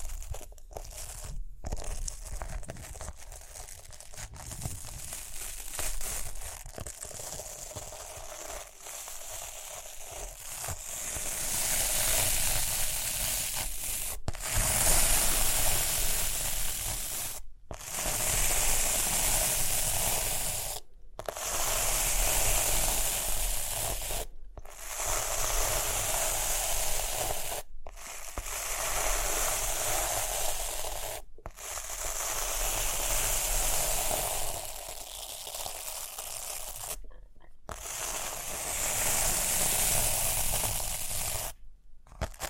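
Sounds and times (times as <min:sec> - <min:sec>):
rhinestones scratched and brushed: 0:00.0 - 0:42.4.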